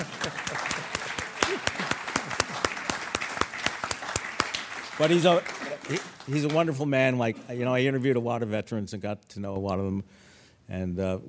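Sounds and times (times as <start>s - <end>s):
audience applause: 0.0s - 7.0s
speech: 5.0s - 11.2s.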